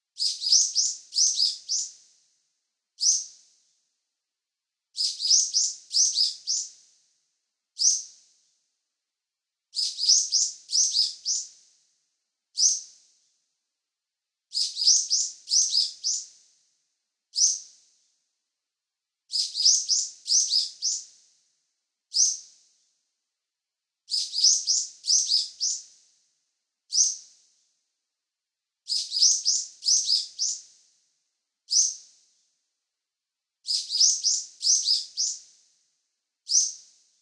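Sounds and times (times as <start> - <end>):
bird: 0.2 - 2.1, 3.0 - 3.6, 5.0 - 6.8, 7.8 - 8.4, 9.8 - 11.6, 12.6 - 13.1, 14.5 - 16.4, 17.3 - 17.9, 19.3 - 21.2, 22.1 - 22.6, 24.1 - 26.1, 26.9 - 27.4, 28.9 - 30.8, 31.7 - 32.2, 33.6 - 35.6, 36.4 - 37.0.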